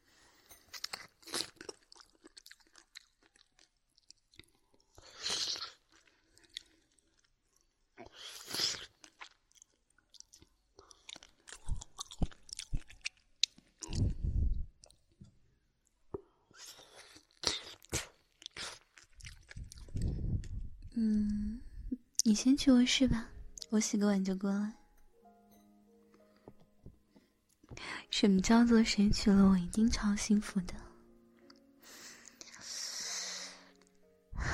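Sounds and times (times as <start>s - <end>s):
person chewing food while eating: 0.6s - 15.2s, 16.2s - 21.4s
speech: 22.3s - 24.8s, 28.2s - 30.8s.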